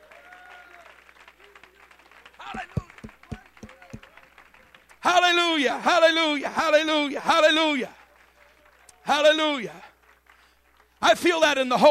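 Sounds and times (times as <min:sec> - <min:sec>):
audience clapping hands: 0:00.0 - 0:05.4, 0:07.4 - 0:11.4
speech: 0:05.1 - 0:08.0, 0:09.1 - 0:09.9, 0:11.0 - 0:11.8.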